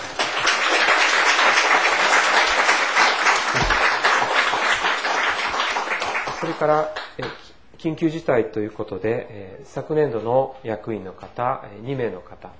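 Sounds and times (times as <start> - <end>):
applause: 0.0 - 7.4
speech: 6.6 - 12.5.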